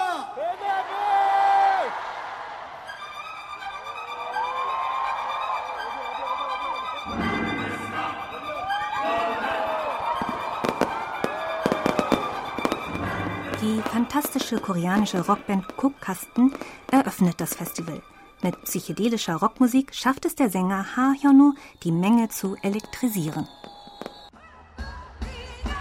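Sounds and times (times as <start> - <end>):
cheers and whoops: 0.0 - 2.8, 4.1 - 6.8, 8.5 - 12.7
crowd noise: 0.0 - 18.0
fireworks booming and crackling: 9.2 - 18.8, 22.6 - 24.3
speech: 14.1 - 23.6.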